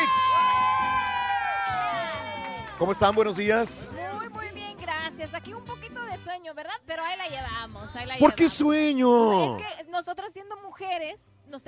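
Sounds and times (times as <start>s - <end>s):
studio audience applause and cheering: 0.0s - 4.0s
speech: 2.8s - 4.4s, 5.2s - 11.6s.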